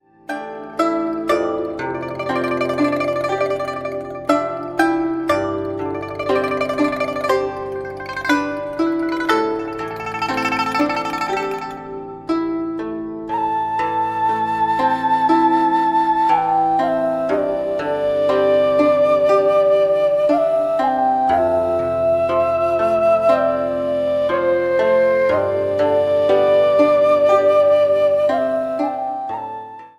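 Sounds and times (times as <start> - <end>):
soothing folk ensemble melody: 0.0 - 29.9.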